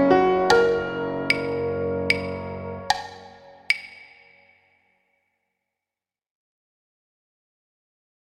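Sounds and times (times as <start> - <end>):
song accompaniment: 0.0 - 4.7.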